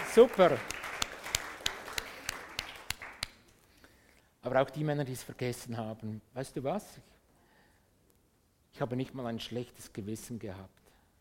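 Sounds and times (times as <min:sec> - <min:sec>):
audience applause: 0:00.0 - 0:03.4
speech: 0:00.2 - 0:00.8, 0:04.4 - 0:07.1, 0:08.8 - 0:10.8.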